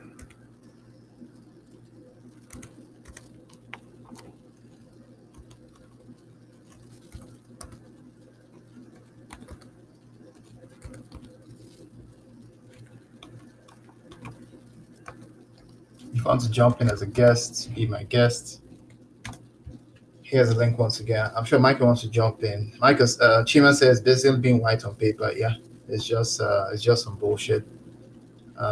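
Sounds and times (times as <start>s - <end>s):
faint computer keyboard typing: 0.0s - 1.4s, 2.2s - 17.4s, 18.6s - 20.8s
low steady hum: 0.0s - 28.7s
speech: 16.3s - 18.6s, 20.3s - 27.8s.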